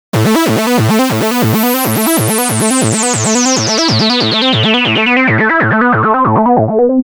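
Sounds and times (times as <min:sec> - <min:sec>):
three-oscillator synthesizer sequence: 0:00.2 - 0:07.0.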